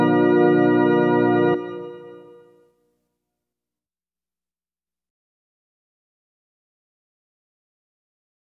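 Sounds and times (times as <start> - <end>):
wedding march played on organ: 0.0 - 2.0.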